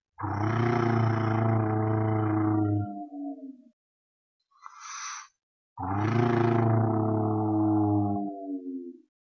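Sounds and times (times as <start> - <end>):
vocal imitation of a domestic dog growling: 0.2 - 3.4, 5.8 - 9.1.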